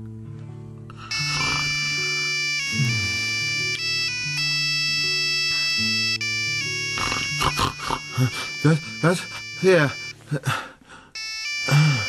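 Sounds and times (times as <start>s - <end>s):
mobile phone ringtone: 0.9s - 10.5s, 11.1s - 12.0s
speech: 9.1s - 10.6s.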